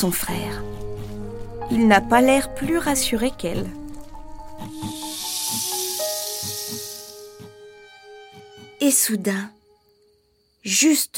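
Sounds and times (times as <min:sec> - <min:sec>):
speech: 0:00.0 - 0:00.7, 0:01.7 - 0:03.8, 0:04.6 - 0:05.7, 0:08.8 - 0:09.6, 0:10.6 - 0:11.1
leaves rustling: 0:00.0 - 0:08.6.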